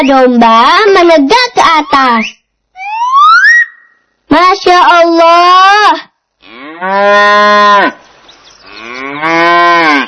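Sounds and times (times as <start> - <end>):
speech: 0.0 - 2.4, 4.3 - 6.1, 6.8 - 8.0, 9.2 - 10.0
cow mooing: 6.4 - 8.0, 8.6 - 10.0.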